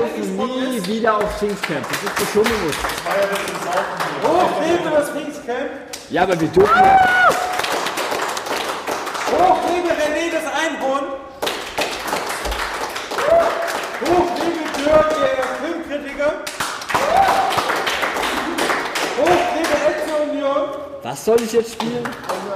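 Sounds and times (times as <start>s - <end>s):
speech: 0.4s - 7.4s, 9.3s - 11.3s, 14.9s - 16.5s, 20.3s - 22.5s
audience applause: 0.8s - 5.0s, 6.6s - 10.2s, 11.4s - 15.9s, 16.6s - 20.2s.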